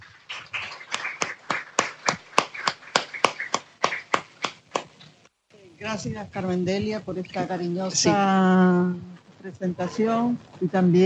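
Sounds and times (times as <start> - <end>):
audience applause: 0.0 - 4.9
speech: 5.8 - 11.0.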